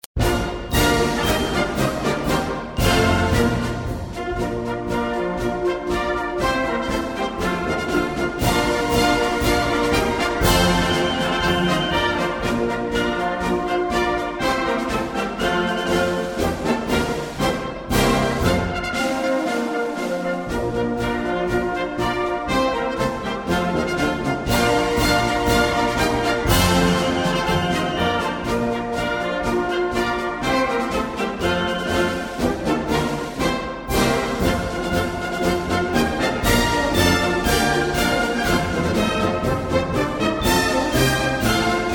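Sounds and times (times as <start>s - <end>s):
Ukrainian march music: 0.0s - 41.9s.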